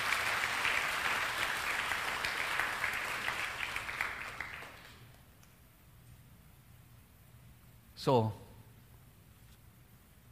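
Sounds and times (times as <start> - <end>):
church congregation applauding God: 0.0 - 5.3
speech: 8.0 - 8.4.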